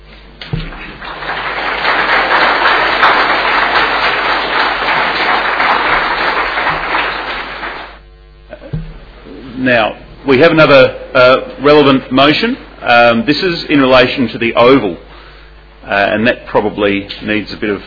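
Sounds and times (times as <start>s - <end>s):
crowd applause: 0.5s - 8.0s
speech: 9.6s - 15.1s, 15.8s - 17.8s.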